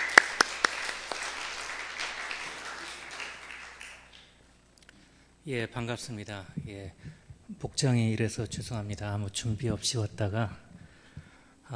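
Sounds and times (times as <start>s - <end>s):
audience applause welcoming a guest: 0.0s - 4.3s
speech: 5.5s - 10.7s.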